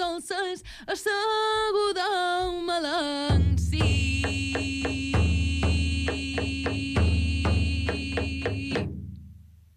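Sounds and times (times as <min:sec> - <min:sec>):
speech: 0:00.2 - 0:03.4
square frame drum struck in a quick rhythm: 0:03.3 - 0:09.3.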